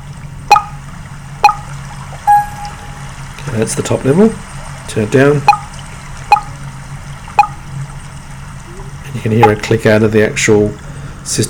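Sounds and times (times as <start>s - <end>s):
water sample of plinking drops played on a small audio device: 0.0s - 3.6s, 5.3s - 6.7s, 7.3s - 7.8s, 8.6s - 10.0s
low steady hum: 0.0s - 11.4s
speech: 3.5s - 5.6s, 9.2s - 11.4s.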